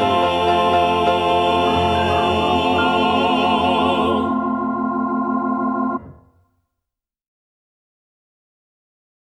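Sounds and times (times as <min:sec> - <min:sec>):
happy rhythm gospel music: 0:00.0 - 0:06.2.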